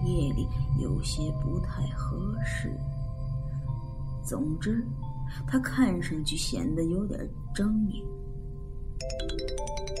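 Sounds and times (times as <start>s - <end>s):
low steady hum: 0.0s - 9.9s
speech: 0.2s - 2.9s, 4.2s - 8.2s, 9.0s - 9.9s
mobile phone ringtone with bright electronic melody: 9.0s - 9.9s.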